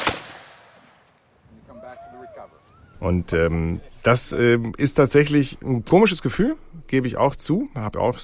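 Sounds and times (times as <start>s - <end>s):
musket firing: 0.0s - 1.1s
speech: 1.9s - 8.2s.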